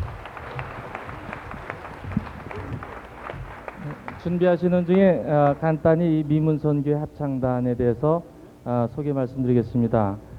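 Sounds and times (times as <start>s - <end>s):
audience applause: 0.0s - 5.7s
speech: 4.2s - 10.3s.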